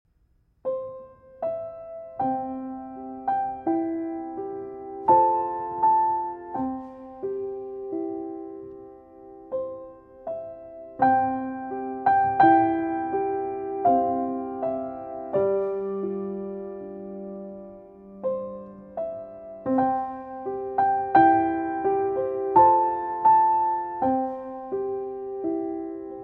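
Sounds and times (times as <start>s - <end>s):
instrumental music: 0.1s - 26.2s.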